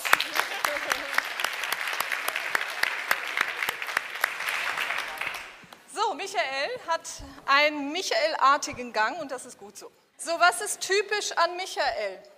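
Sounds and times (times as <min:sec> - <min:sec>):
seminar audience applause: 0:00.0 - 0:05.6
speech: 0:06.2 - 0:12.3.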